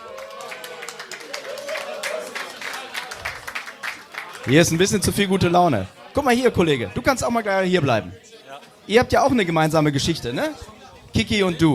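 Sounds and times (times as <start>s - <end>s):
audience applause: 0.0s - 5.1s
speech: 4.4s - 8.3s, 8.9s - 11.7s.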